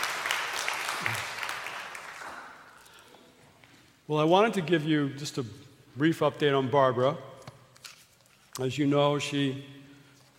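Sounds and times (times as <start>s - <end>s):
audience applause at a church gathering: 0.0s - 2.8s
speech: 1.0s - 1.3s, 4.1s - 7.3s, 8.6s - 9.8s.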